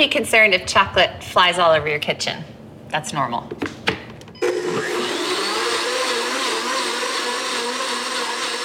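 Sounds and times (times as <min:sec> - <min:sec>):
speech: 0:00.0 - 0:03.8
blender running with hot coffee added: 0:04.4 - 0:08.6.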